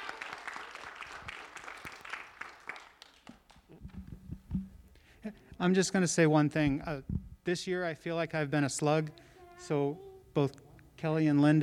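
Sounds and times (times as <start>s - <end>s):
audience applause: 0.0s - 3.6s
speech: 5.2s - 11.6s.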